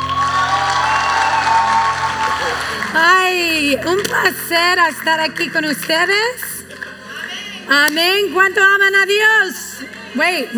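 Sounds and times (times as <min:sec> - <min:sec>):
audience applauding and cheering to welcome a pastor at a church event: 0:00.0 - 0:07.7
speech: 0:03.7 - 0:06.5, 0:07.7 - 0:10.5.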